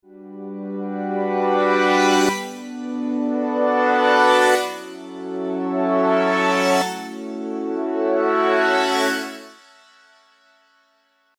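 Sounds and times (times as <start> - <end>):
Serum synthesizer chords: 0.4 - 9.4.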